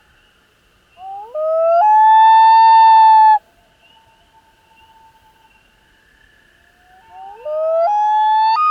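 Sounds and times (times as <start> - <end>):
loon giving loud arched mellow notes: 1.0 - 3.4, 7.0 - 8.7.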